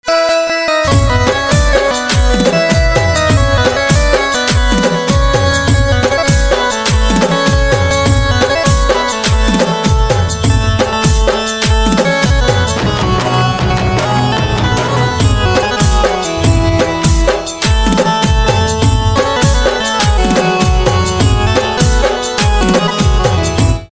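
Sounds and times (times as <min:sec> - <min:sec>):
devotional banjo instrumental ringtone: 0:00.0 - 0:23.9.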